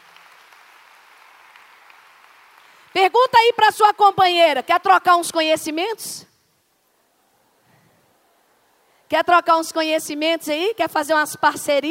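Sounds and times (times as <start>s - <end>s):
applause: 0.0s - 3.5s
speech: 3.0s - 6.3s, 9.1s - 11.8s.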